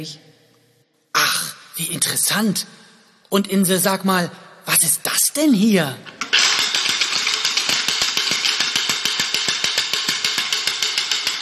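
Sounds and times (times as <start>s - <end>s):
speech: 0.0s - 0.3s, 1.8s - 6.2s
night watchman's wooden ratchet rattling: 6.0s - 11.4s.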